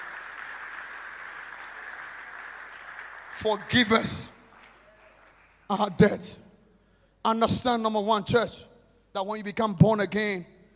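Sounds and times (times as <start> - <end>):
crowd clapping: 0.0 - 6.0
speech: 3.4 - 4.4, 5.7 - 6.4, 7.2 - 10.5.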